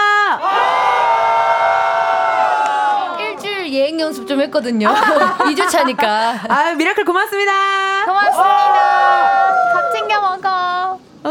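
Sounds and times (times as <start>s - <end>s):
fans cheering and screaming: 0.4s - 3.5s, 8.2s - 10.2s
speech: 4.1s - 11.2s
laughter: 4.8s - 6.9s.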